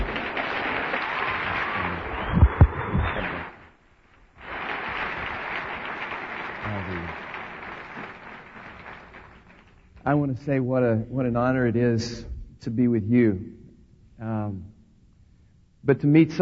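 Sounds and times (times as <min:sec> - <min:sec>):
audience applause welcoming a guest speaker in a church gathering: 0:00.0 - 0:10.0
speech: 0:10.1 - 0:13.6, 0:14.2 - 0:14.7, 0:15.8 - 0:16.3.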